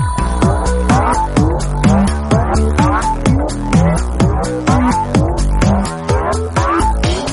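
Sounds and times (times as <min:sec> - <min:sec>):
drum beats ringtone: 0:00.2 - 0:07.3.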